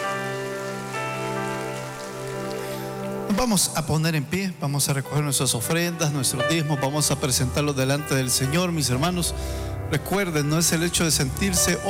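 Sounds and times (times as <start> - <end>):
audience applause: 0.0 - 3.4
speech: 3.3 - 11.8.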